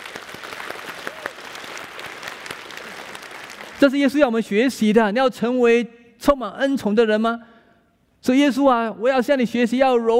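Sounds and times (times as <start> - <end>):
audience clapping: 0.0 - 4.2
speech: 3.8 - 7.5, 8.2 - 10.1.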